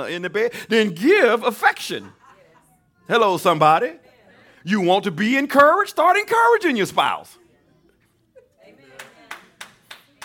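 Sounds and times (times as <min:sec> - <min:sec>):
speech: 0:00.0 - 0:02.2, 0:03.1 - 0:07.4
single person's hand clap: 0:09.0 - 0:10.2.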